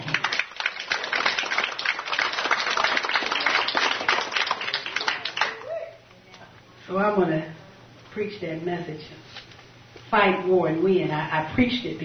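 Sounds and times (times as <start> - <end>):
audience clapping: 0.0 - 5.8
speech: 6.9 - 7.6, 8.2 - 9.4, 10.1 - 12.0.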